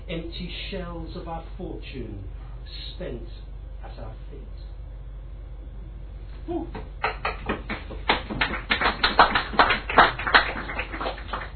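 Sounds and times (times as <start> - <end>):
speech: 0.1 - 4.7, 6.4 - 7.7
audience clapping: 7.0 - 11.5.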